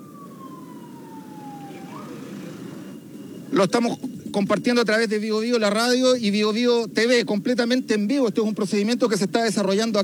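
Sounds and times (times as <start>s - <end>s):
ambulance sirens: 0.0s - 5.9s
speech: 3.5s - 10.0s.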